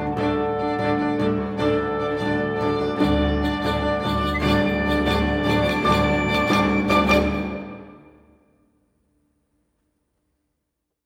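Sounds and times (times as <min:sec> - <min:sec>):
instrumental music: 0:00.0 - 0:08.4.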